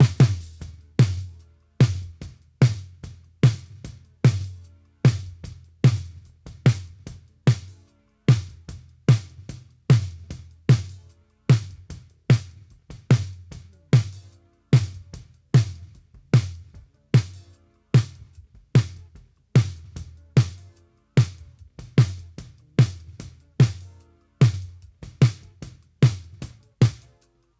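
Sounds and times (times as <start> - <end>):
snare drum: 0.0 - 27.3.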